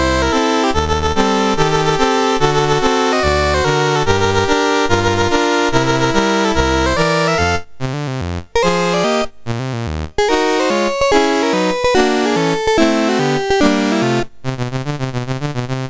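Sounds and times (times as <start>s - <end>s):
MOS6581R4 chip music: 0.0s - 15.8s.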